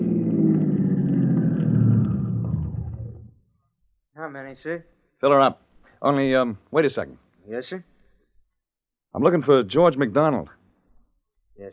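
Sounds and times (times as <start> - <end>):
car engine pulling into a gas station: 0.0 - 3.3
speech: 4.2 - 7.9, 9.1 - 10.6, 11.6 - 11.7.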